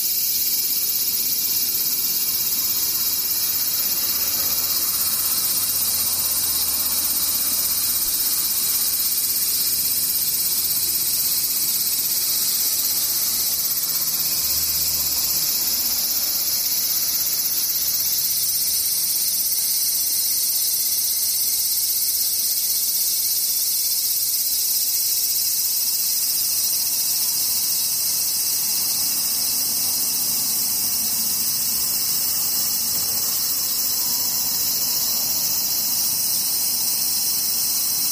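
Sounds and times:
insects buzzing: 0:00.0 - 0:38.1.

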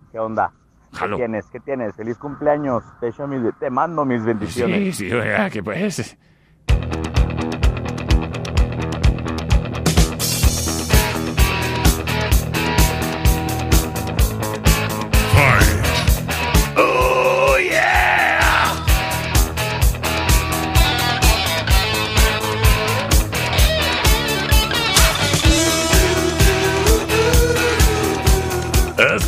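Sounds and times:
speech: 0:00.1 - 0:06.4
loud rock song played on air: 0:06.8 - 0:29.1.

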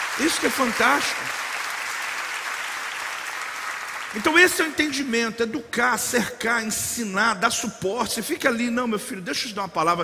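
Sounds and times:
audience applause: 0:00.0 - 0:05.0
speech: 0:00.2 - 0:01.5, 0:04.1 - 0:10.0.

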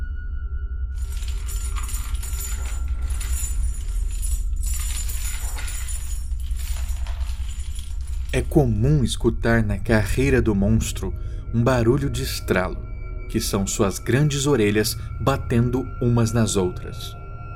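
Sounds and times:
chains dragging: 0:01.0 - 0:08.8
speech: 0:08.4 - 0:17.2.

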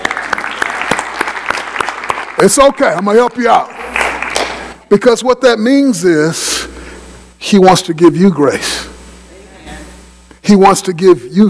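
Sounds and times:
audience applause: 0:00.0 - 0:04.8
speech: 0:02.4 - 0:03.8, 0:04.9 - 0:06.6, 0:07.4 - 0:08.9, 0:10.5 - 0:11.4.

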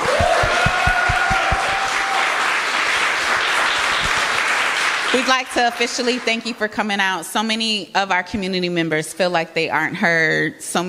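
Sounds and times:
rhythmic low thumps: 0:00.0 - 0:01.9
audience applause: 0:00.0 - 0:06.3
speech: 0:05.2 - 0:10.8.

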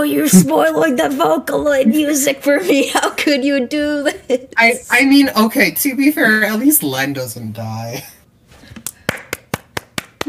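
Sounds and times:
speech: 0:00.0 - 0:08.2
crowd clapping: 0:09.0 - 0:10.2.

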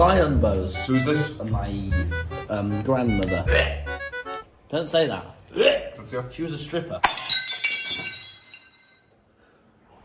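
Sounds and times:
speech: 0:00.0 - 0:04.0, 0:04.7 - 0:07.2
glass object being smashed: 0:07.0 - 0:09.1.

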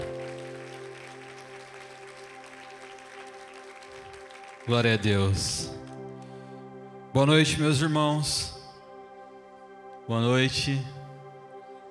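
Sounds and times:
audience applause: 0:00.0 - 0:06.0
sustained held keyboard chord: 0:00.0 - 0:11.8
speech: 0:04.7 - 0:05.8, 0:07.1 - 0:08.6, 0:10.1 - 0:11.0.

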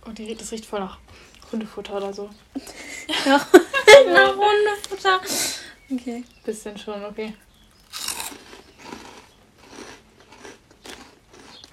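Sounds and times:
speech: 0:00.1 - 0:07.4
laughter: 0:02.6 - 0:04.8
crunching and chewing cheesy corn puffs: 0:07.6 - 0:11.7.

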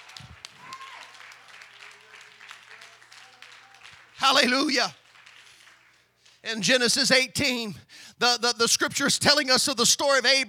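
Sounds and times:
audience clapping hands: 0:00.0 - 0:06.7
speech: 0:04.2 - 0:05.0, 0:06.4 - 0:10.4.

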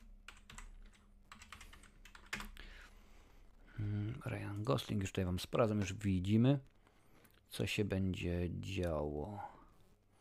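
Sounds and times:
typing on a computer keyboard: 0:00.0 - 0:02.6
speech: 0:03.8 - 0:06.7, 0:07.5 - 0:09.6.

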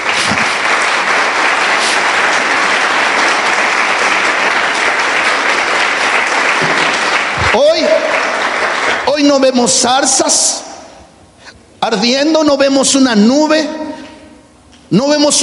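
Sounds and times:
audience applause: 0:00.0 - 0:09.8
speech: 0:07.6 - 0:08.2, 0:09.2 - 0:10.6, 0:11.8 - 0:13.8, 0:14.9 - 0:15.4.

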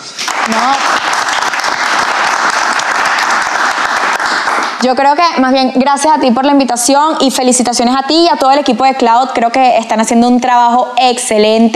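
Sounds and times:
applause: 0:00.0 - 0:04.8
speech: 0:00.5 - 0:01.1, 0:04.8 - 0:11.7.

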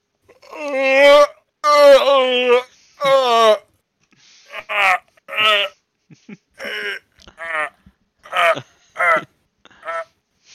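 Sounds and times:
long exaggerated yawn: 0:00.3 - 0:03.6, 0:06.6 - 0:10.1.

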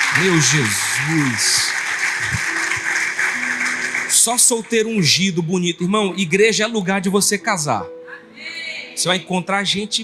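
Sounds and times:
crowd applause: 0:00.0 - 0:05.0
speech: 0:00.2 - 0:02.5, 0:04.2 - 0:08.0, 0:09.0 - 0:10.0.

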